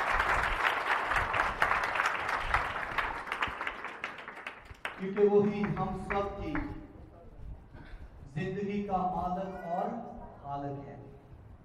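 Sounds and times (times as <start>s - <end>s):
loud audience applause: 0.0s - 6.7s
speech: 5.0s - 6.8s, 8.4s - 11.0s.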